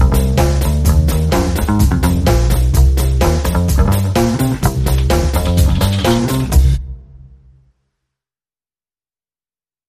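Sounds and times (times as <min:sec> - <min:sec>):
drums: 0:00.0 - 0:07.3
bass: 0:00.0 - 0:07.6.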